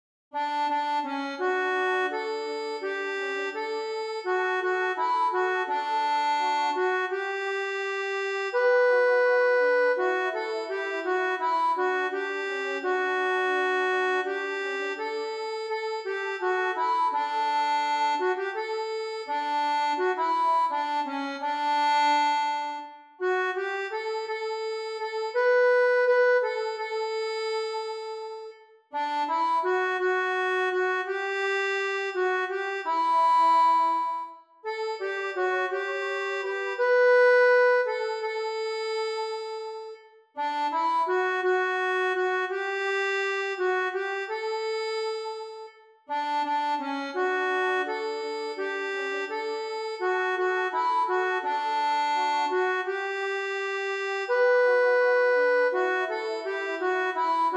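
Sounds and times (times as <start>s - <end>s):
accordion: 0.3s - 57.5s.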